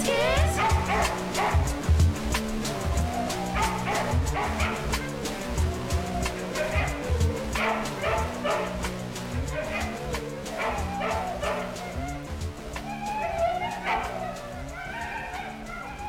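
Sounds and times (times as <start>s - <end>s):
dogs barking in background of album: 0.2s - 1.8s, 2.9s - 12.2s, 12.9s - 16.0s.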